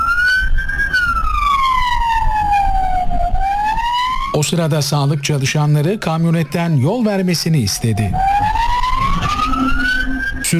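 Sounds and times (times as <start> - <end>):
ambulance siren wailing in Istanbul rushing a patient: 0.0 - 10.5
speech: 4.4 - 8.7.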